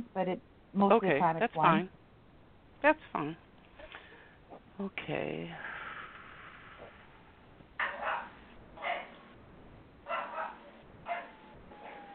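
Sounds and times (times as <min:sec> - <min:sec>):
speech: 0:00.2 - 0:02.0, 0:02.8 - 0:03.4, 0:04.8 - 0:05.7
puppy barking: 0:07.8 - 0:09.2, 0:10.1 - 0:12.0.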